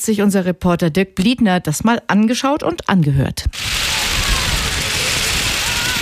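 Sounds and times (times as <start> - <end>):
speech: 0.0 - 3.7
homemade wind spinners whirring on a beach: 3.6 - 6.0.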